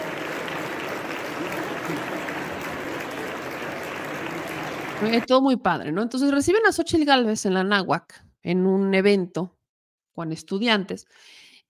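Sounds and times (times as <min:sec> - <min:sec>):
crowd applauding: 0:00.0 - 0:05.3
speech: 0:05.0 - 0:09.6, 0:10.2 - 0:11.5.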